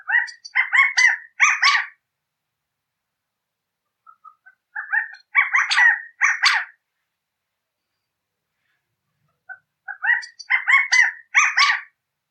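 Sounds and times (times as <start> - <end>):
California quail calling: 0.0 - 2.0, 4.0 - 6.8, 9.4 - 12.0.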